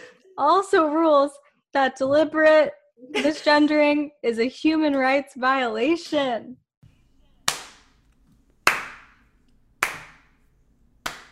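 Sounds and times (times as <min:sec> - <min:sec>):
speech: 0:00.4 - 0:06.6
slow clap: 0:07.4 - 0:11.2.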